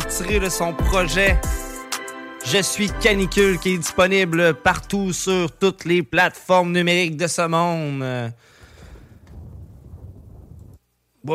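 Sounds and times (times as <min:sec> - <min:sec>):
speech: 0:00.2 - 0:01.6, 0:02.4 - 0:08.5
thunder rumbling: 0:08.9 - 0:10.8.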